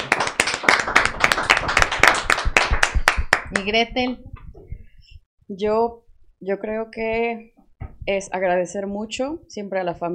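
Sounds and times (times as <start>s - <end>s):
audience applause: 0.0s - 3.2s
speech: 3.5s - 4.3s, 5.5s - 10.1s.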